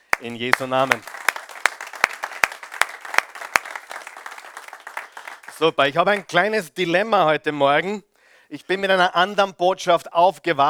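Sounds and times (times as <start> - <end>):
audience applause: 0.0 - 6.3
speech: 0.2 - 1.1, 5.6 - 10.6.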